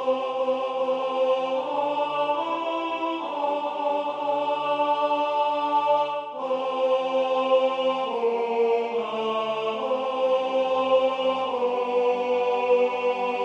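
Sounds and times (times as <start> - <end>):
tenor singing: 0.0 - 13.4.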